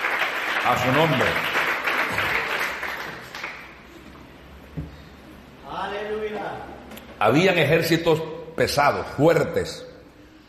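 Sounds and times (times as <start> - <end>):
audience applauding loudly: 0.0 - 4.0
speech: 0.6 - 1.6, 7.2 - 9.9.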